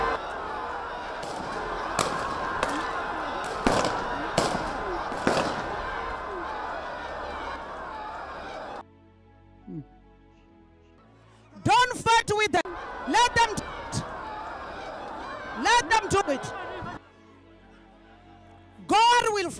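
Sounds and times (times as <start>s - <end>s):
dense noisy crowd: 0.0s - 8.8s, 11.7s - 19.5s
laughter: 0.0s - 8.8s, 12.7s - 18.8s
gunshots as people gather to pray in South Africa: 1.2s - 6.0s.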